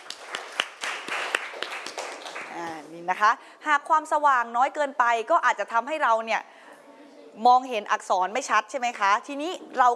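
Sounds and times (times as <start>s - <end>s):
class clapping hands: 0.0s - 2.7s
speech: 3.1s - 6.5s, 7.4s - 9.9s.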